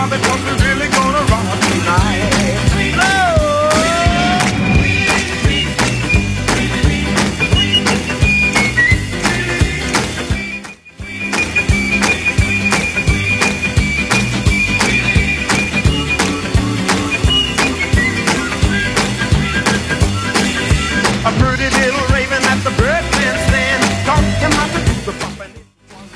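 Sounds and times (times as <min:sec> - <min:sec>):
music: 0:00.0 - 0:26.1.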